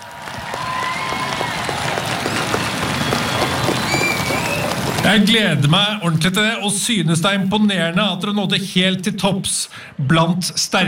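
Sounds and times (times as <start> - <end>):
audience applause: 0.0 - 6.3
speech: 5.1 - 10.8.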